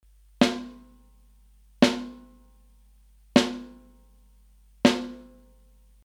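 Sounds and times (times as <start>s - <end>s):
snare drum hit in the middle: 0.4s - 0.8s, 1.8s - 2.3s, 3.4s - 3.8s, 4.9s - 5.4s.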